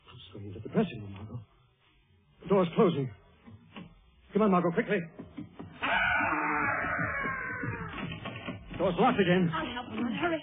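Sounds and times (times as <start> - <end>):
speech: 0.4 - 1.5, 2.6 - 3.2, 4.4 - 5.2, 8.8 - 10.4
eerie ghostly wailing voice: 5.8 - 8.2.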